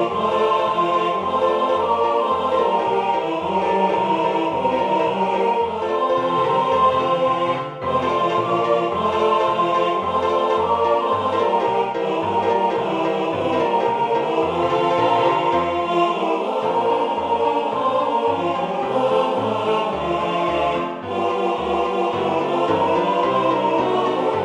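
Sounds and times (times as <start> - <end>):
piano playing all parts: 0.0 - 24.4.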